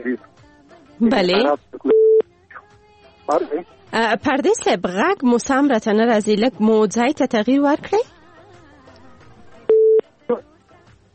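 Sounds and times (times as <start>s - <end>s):
speech: 1.0s - 1.7s, 3.3s - 8.1s
telephone busy tone after a call is cut off: 1.9s - 2.2s, 9.7s - 10.0s.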